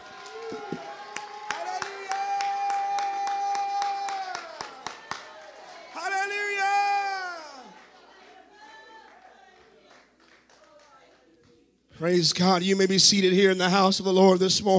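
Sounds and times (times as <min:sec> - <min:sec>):
crowd clapping: 0:00.0 - 0:11.6
speech: 0:12.0 - 0:14.7.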